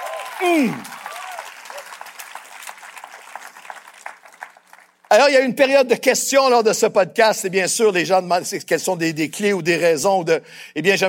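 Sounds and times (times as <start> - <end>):
church congregation applause: 0.0 - 5.4
speech: 0.4 - 1.0, 5.1 - 11.0.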